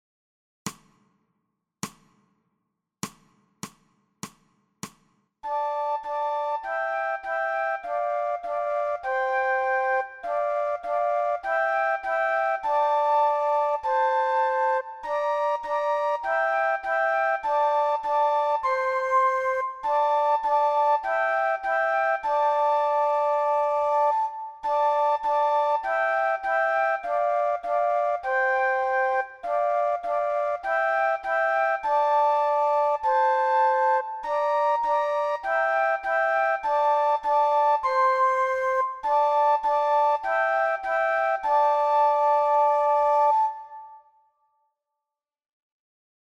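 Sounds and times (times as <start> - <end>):
two flutes: 5.4 - 44.4.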